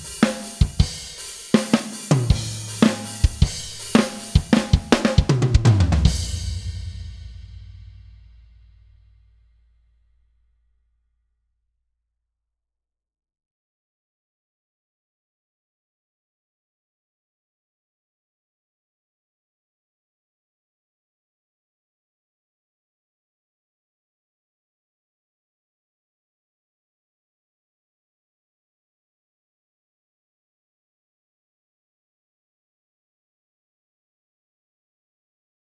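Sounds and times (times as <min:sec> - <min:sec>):
drums: 0:00.0 - 0:09.3.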